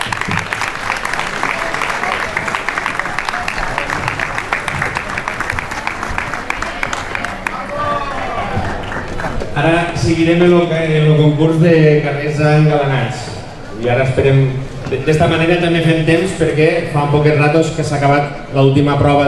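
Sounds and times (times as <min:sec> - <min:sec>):
crowd applauding for the winners: 0:00.0 - 0:09.7
murmur of voices: 0:00.0 - 0:16.1
speech: 0:09.6 - 0:19.2.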